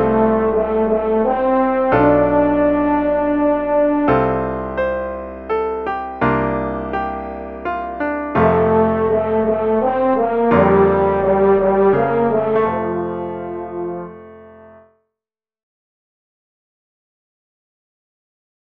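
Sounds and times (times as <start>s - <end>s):
horn: 0.0s - 5.3s, 8.3s - 14.9s
piano: 0.0s - 15.0s.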